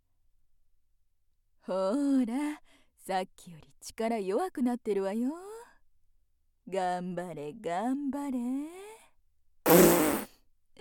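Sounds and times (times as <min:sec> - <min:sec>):
speech: 0:01.6 - 0:05.5, 0:06.7 - 0:08.9
fart: 0:09.7 - 0:10.3.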